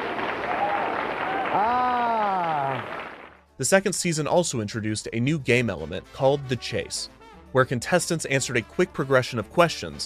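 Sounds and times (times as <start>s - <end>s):
audience applause: 0.0s - 3.4s
speech: 3.6s - 10.0s.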